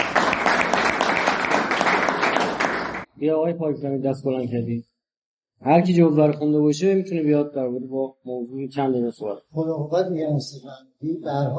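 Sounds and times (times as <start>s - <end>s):
audience applause: 0.0s - 3.1s
speech: 3.2s - 4.9s, 5.6s - 11.5s.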